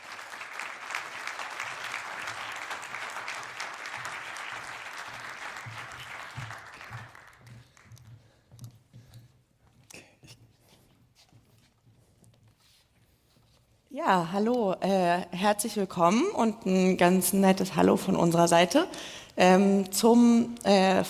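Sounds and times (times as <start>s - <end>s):
audience applause: 0.0s - 7.8s
speech: 14.0s - 21.0s.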